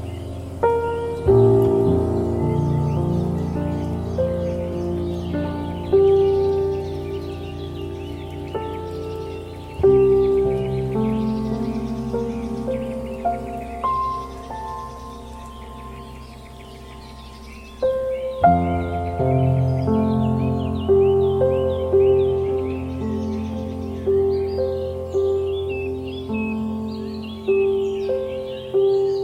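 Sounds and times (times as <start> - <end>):
ambient relaxing piano music: 0.0 - 29.2
birds singing: 0.0 - 29.2.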